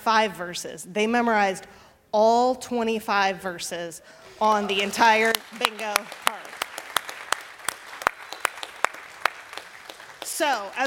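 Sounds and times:
speech: 0.0 - 6.5, 10.4 - 10.8
church audience applauding: 4.5 - 10.8.

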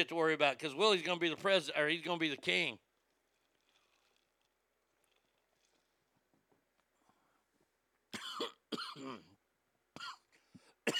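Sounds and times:
speech: 0.0 - 2.8
person coughing after Dr Pepper went down the wrong way: 8.1 - 9.4, 10.0 - 10.9.

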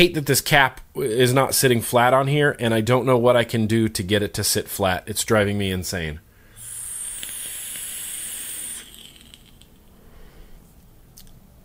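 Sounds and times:
speech: 0.0 - 6.2
vape fused Clapton coil hissing: 6.5 - 10.0.

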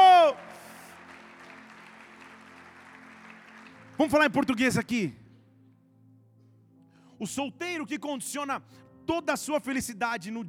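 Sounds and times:
audience applause: 0.0 - 5.0
speech: 4.0 - 5.2, 7.2 - 10.4.

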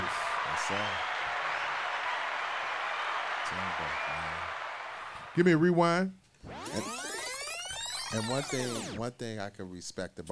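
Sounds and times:
crowd hand clapping: 0.0 - 5.4
speech: 0.7 - 1.1, 3.5 - 4.5, 5.4 - 7.0, 8.1 - 10.3.

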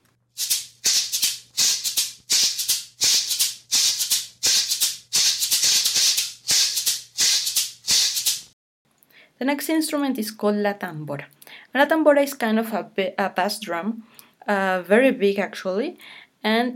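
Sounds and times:
Colombian maracón shaker playing: 0.4 - 8.5
speech: 9.4 - 16.7.

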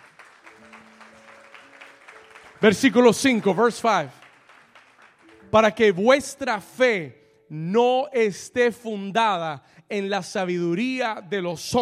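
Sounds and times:
audience clapping: 0.0 - 6.1
speech: 2.6 - 4.2, 5.5 - 11.8.

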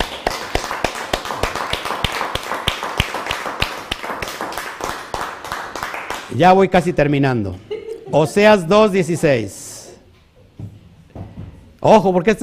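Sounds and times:
loud applause: 0.0 - 6.3
speech: 6.4 - 9.6, 11.8 - 12.4.

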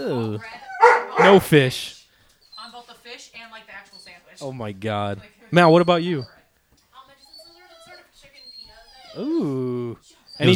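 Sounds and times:
dog whimpering and whining: 0.0 - 1.7, 2.4 - 3.0, 3.8 - 4.5, 5.5 - 6.4, 7.1 - 10.5
speech: 0.0 - 2.0, 4.4 - 6.4, 9.2 - 10.5.

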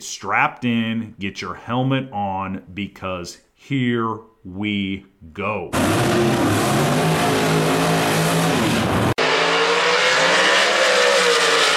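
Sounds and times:
speech: 0.0 - 7.7
drag racing car engine revving: 5.7 - 11.7.

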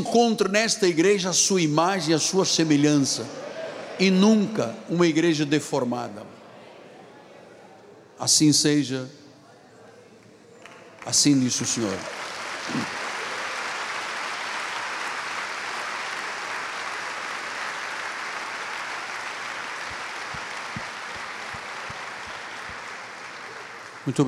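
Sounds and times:
speech: 0.0 - 6.4, 8.2 - 9.2, 11.0 - 13.0, 24.1 - 24.2
crowd applause: 2.6 - 5.2, 10.6 - 24.2.

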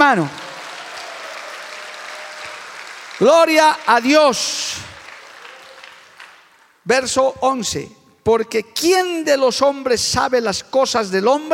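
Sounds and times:
audience clapping: 0.0 - 6.8
speech: 0.1 - 0.4, 3.2 - 4.9, 6.9 - 11.5.

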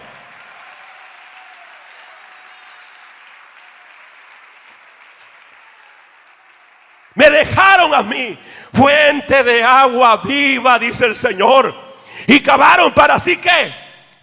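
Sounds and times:
audience applause: 0.0 - 7.3
speech: 7.2 - 13.8.

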